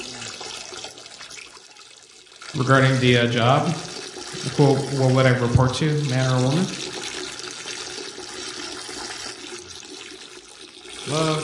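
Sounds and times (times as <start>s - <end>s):
man urinating: 0.0s - 11.4s
speech: 2.5s - 6.9s, 11.1s - 11.4s.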